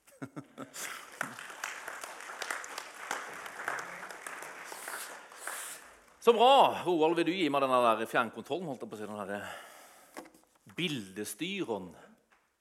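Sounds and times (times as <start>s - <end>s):
laughter: 0.0s - 2.0s
clapping: 0.7s - 6.2s
speech: 6.3s - 9.7s, 10.8s - 12.0s.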